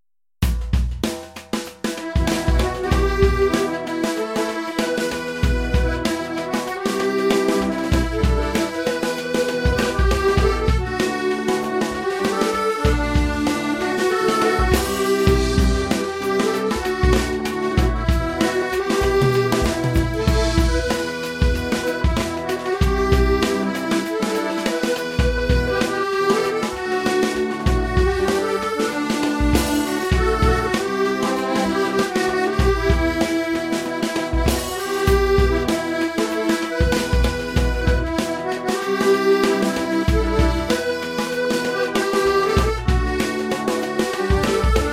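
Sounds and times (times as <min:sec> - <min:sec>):
drums: 0:00.4 - 0:44.9.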